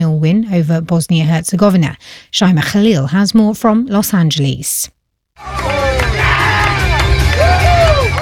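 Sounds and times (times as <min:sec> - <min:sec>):
speech: 0:00.2 - 0:05.7
fans cheering at watch party: 0:05.4 - 0:08.2.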